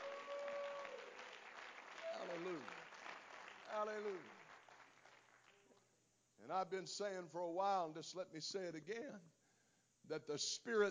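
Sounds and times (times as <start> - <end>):
audience clapping hands: 0.0 - 5.9
speech: 3.8 - 4.4, 6.4 - 9.4, 10.1 - 10.8.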